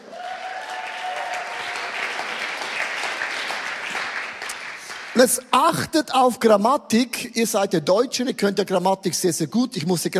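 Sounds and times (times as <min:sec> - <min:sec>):
audience clapping: 0:00.0 - 0:05.6
speech: 0:05.2 - 0:10.1.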